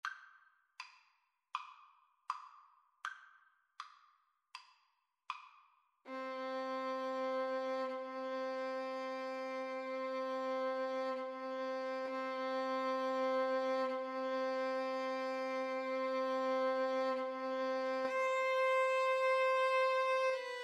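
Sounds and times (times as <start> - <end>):
cello: 6.1 - 20.6
violin: 6.1 - 20.6.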